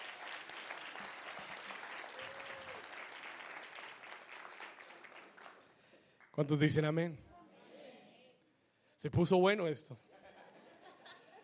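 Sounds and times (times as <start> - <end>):
crowd clapping: 0.0 - 6.5
speech: 6.4 - 7.3, 9.0 - 10.1.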